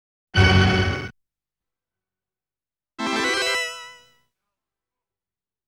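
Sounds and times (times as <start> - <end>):
sound effects: 0.4 - 1.1, 3.0 - 4.1.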